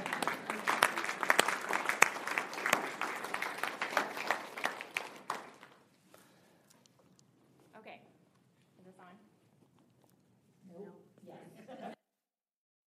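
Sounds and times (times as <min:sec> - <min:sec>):
group of people clapping: 0:00.0 - 0:06.0.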